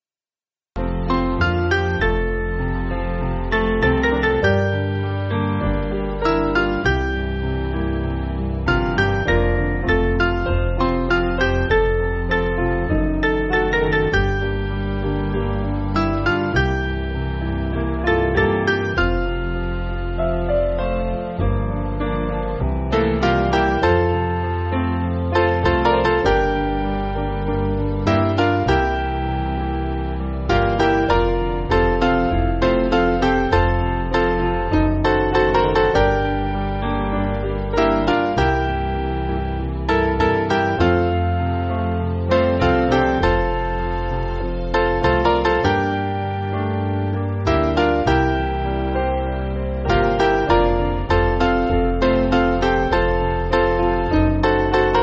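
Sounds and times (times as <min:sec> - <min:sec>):
piano: 0:00.8 - 0:55.0.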